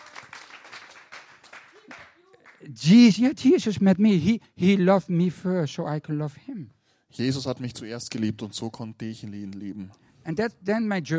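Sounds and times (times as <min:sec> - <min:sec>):
crowd applauding: 0:00.0 - 0:02.8
speech: 0:02.6 - 0:11.1.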